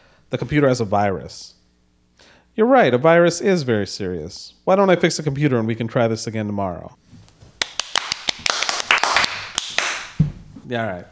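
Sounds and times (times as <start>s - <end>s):
speech: 0.3s - 1.6s, 2.2s - 7.1s, 10.7s - 11.1s
small audience clapping: 7.6s - 10.2s.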